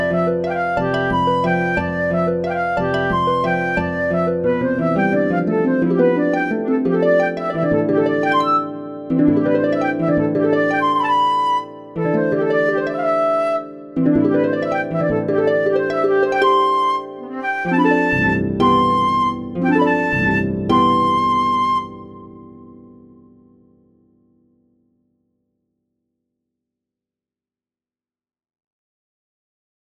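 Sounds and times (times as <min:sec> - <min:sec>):
sinfonietta for flute and harp: 0:00.0 - 0:23.6.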